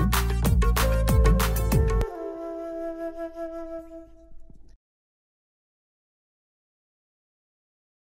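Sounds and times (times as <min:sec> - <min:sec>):
new beat music mix: 0:00.0 - 0:02.0.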